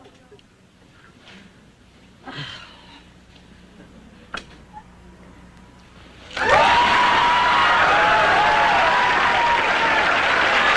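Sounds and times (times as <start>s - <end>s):
sitcom studio audience applause: 6.3s - 10.7s.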